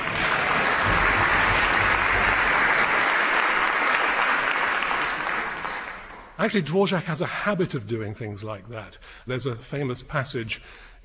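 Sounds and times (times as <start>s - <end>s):
audience applause: 0.0s - 6.4s
speech: 6.4s - 11.0s.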